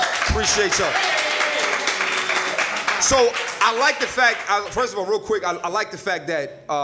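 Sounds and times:
audience clapping: 0.0s - 5.1s
speech: 0.4s - 1.2s, 3.0s - 6.8s.

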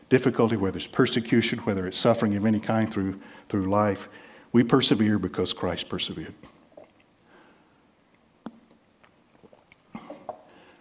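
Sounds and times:
speech: 0.1s - 6.6s
person drinking water: 6.6s - 7.1s, 8.5s - 10.8s.

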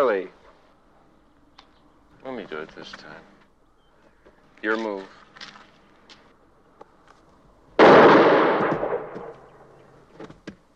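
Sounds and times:
speech: 0.0s - 0.4s, 2.2s - 3.4s, 4.6s - 5.6s
gunshot during a duel: 7.8s - 9.6s.

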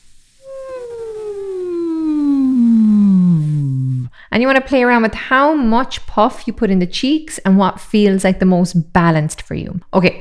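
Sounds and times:
voice doing a siren exercise: 0.4s - 4.2s
speech: 4.4s - 10.2s.

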